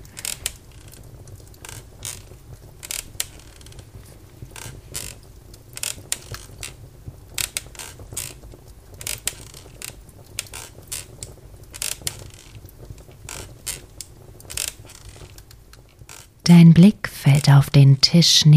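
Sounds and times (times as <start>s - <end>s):
rocking chair rocking: 0.0s - 16.5s
speech: 17.5s - 18.5s.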